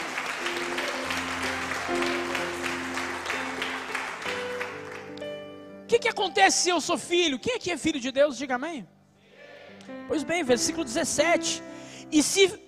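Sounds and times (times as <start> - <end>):
strong applause: 0.0 - 5.4
speech: 6.0 - 9.0, 10.1 - 12.6.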